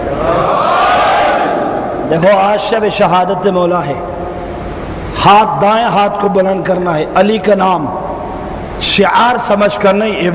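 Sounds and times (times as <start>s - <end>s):
crowd chanting a religious slogan on a night of mourning for Ali: 0.1s - 1.9s
speech: 2.1s - 4.1s, 5.2s - 8.0s, 8.8s - 10.3s.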